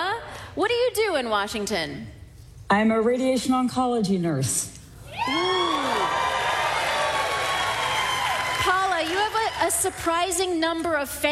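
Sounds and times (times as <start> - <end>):
speech: 0.6 - 5.8, 9.6 - 11.2
studio audience applause and cheering: 5.1 - 10.0.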